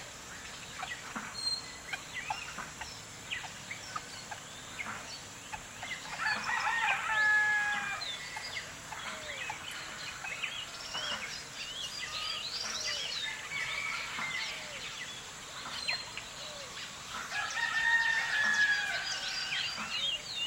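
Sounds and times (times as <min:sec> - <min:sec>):
birds singing in the early morning in a village: 0:00.0 - 0:20.4
rooster crowing in the morning in a village: 0:06.2 - 0:08.1, 0:13.1 - 0:14.9, 0:17.3 - 0:19.8.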